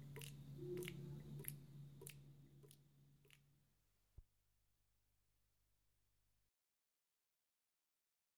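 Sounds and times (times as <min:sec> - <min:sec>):
water dripping from a leak: 0:00.0 - 0:03.5.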